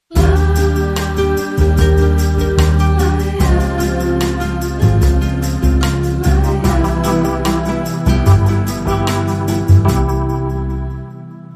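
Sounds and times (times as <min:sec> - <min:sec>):
dreamy bossa nova music: 0:00.0 - 0:11.5.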